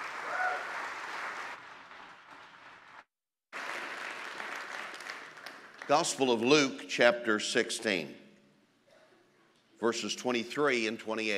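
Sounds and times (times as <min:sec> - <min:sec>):
church congregation clapping at a Baptist service: 0:00.0 - 0:06.7
speech: 0:05.9 - 0:08.2, 0:09.8 - 0:11.3.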